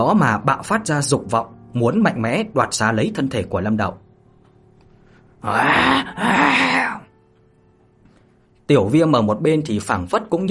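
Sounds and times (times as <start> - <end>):
speech: 0.0 - 4.0, 5.4 - 6.8, 8.7 - 10.4
low beast growl: 5.5 - 7.0.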